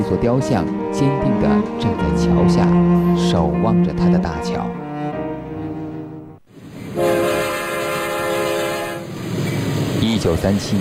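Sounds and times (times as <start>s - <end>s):
speech: 0.0s - 4.8s, 10.2s - 10.7s
train crossing bridge: 0.0s - 10.7s
train horn: 6.9s - 9.1s.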